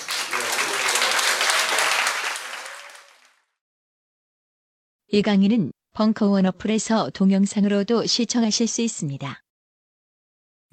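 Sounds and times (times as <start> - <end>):
audience applause: 0.0 - 3.6
speech: 5.1 - 9.4.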